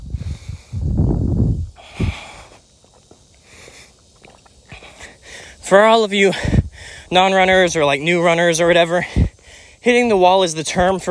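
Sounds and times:
quiet breathing: 0.0s - 1.0s, 1.7s - 5.6s, 6.3s - 7.1s, 9.0s - 9.8s
person sipping water during a run: 4.1s - 5.0s
speech: 5.7s - 9.2s, 9.8s - 11.0s.

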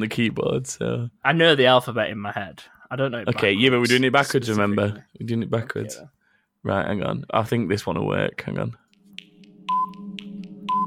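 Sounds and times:
speech: 0.0s - 8.8s
ten-second countdown timer sound effect: 8.9s - 10.8s.

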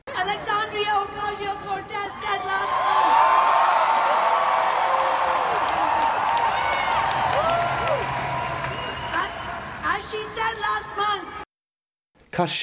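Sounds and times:
rally crowd cheering: 0.1s - 11.4s
whooping: 0.2s - 10.7s
scattered clapping: 2.8s - 9.6s
speech: 12.4s - 12.6s.

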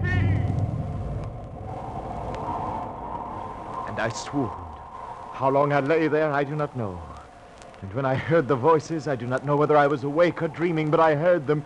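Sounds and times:
rain falling, radio drama sound effect: 0.0s - 11.6s
speech: 4.0s - 4.6s, 5.4s - 7.1s, 7.8s - 11.6s.

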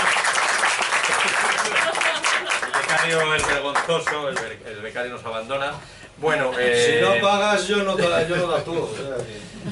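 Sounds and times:
crowd applauding: 0.0s - 4.5s
laughter: 1.1s - 2.9s, 7.9s - 9.7s
speech: 3.1s - 9.7s.

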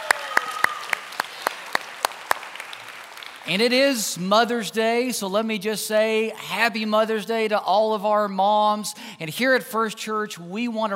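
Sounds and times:
church congregation hand clapping in welcome on Mother's Day: 0.0s - 3.5s
speech: 3.4s - 10.9s.

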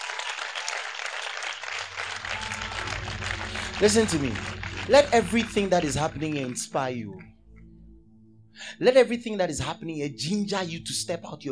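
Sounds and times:
audience clapping: 0.0s - 7.2s
speech: 3.8s - 7.3s, 8.7s - 11.5s.

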